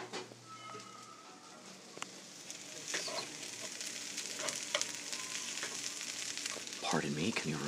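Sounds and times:
food sizzling on an open stove: 0.3 - 7.6
speech: 7.0 - 7.6.

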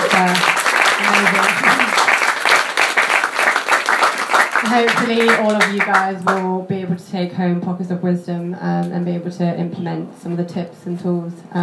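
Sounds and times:
crowd applauding: 0.0 - 6.4
speech: 0.2 - 1.9, 4.7 - 11.6.

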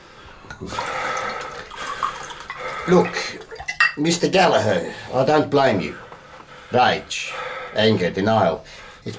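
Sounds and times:
drink being poured: 0.5 - 4.0
speech: 2.9 - 3.3, 4.0 - 6.0, 6.7 - 9.1.

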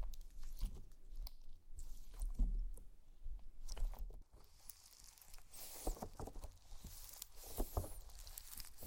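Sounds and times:
slime being squeezed and poked: 0.2 - 8.8
bright crackling: 4.3 - 8.8.

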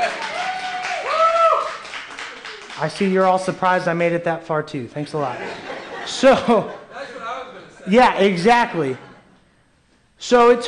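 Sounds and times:
cheers or whistles: 0.0 - 1.8
audience clapping: 0.0 - 3.5
speech: 2.8 - 6.8, 7.8 - 9.1, 10.2 - 10.6
laughter: 5.2 - 9.4.

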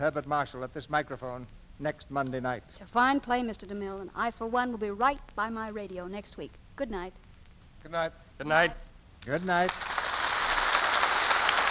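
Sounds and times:
speech: 0.0 - 9.9
crowd applauding: 9.5 - 11.7.

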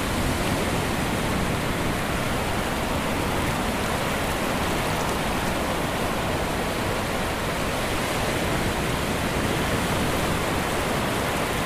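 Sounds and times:
Atlantic ocean waves rolling against a hot summer beach: 0.0 - 11.6.

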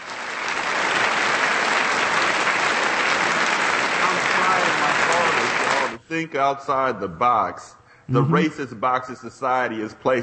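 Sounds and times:
studio audience applause for contestants: 0.0 - 6.0
speech: 6.1 - 10.2.

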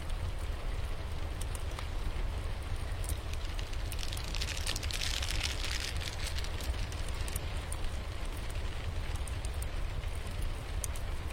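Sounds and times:
fire burning with hiss and low rumble: 0.0 - 11.3.

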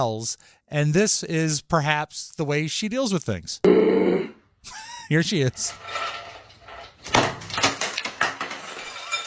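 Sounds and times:
speech: 0.0 - 6.2
bucket of ice thrown into bathtub: 6.0 - 9.2.

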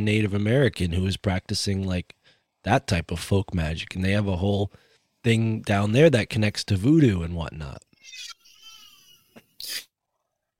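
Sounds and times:
speech: 0.0 - 8.4
baby crying: 8.0 - 9.4.

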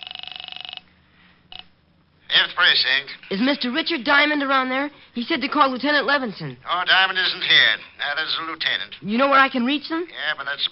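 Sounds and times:
telephone ringing on the line: 0.0 - 0.9
speech: 2.6 - 10.7.

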